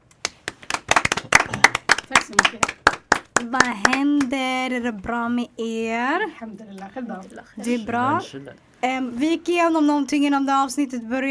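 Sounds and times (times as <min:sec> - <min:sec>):
applause: 0:00.2 - 0:04.4
speech: 0:02.2 - 0:11.2.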